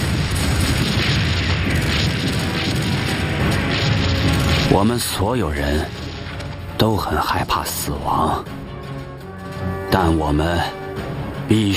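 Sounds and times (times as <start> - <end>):
artillery fire: 0.0 - 6.7
explosions: 0.0 - 7.5
speech: 4.7 - 6.0, 6.8 - 8.6, 9.9 - 10.8, 11.5 - 11.7.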